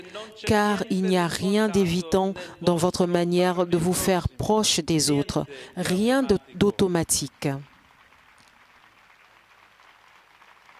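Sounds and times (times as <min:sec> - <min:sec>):
speech: 0:00.1 - 0:07.7
applause from people present: 0:07.6 - 0:10.7.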